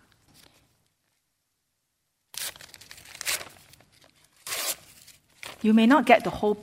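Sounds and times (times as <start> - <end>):
yellow and pink paper stuck together tearing apart: 2.3 - 5.7
speech: 5.6 - 6.6.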